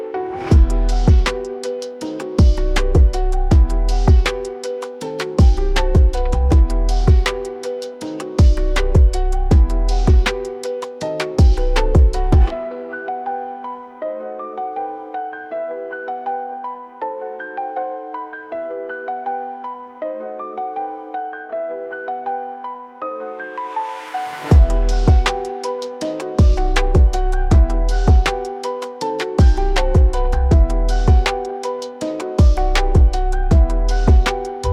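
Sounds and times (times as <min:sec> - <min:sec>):
808 drum machine drums: 0:00.5 - 0:01.6, 0:02.4 - 0:04.6, 0:05.2 - 0:07.5, 0:08.4 - 0:10.6, 0:11.2 - 0:12.5, 0:24.5 - 0:25.5, 0:26.4 - 0:28.5, 0:29.4 - 0:31.5, 0:32.4 - 0:34.7.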